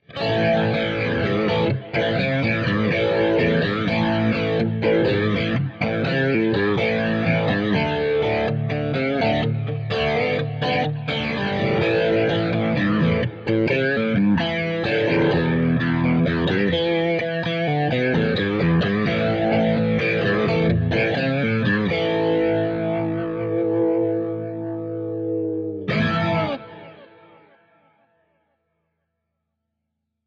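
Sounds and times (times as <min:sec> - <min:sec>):
slow Leslie rotary speaker: 0:00.0 - 0:27.9.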